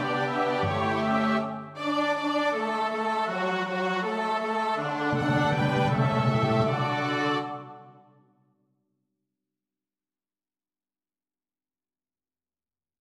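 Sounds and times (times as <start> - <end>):
SATB choir part rehearsal: 0.0 - 8.0
orchestra playing: 0.0 - 8.0.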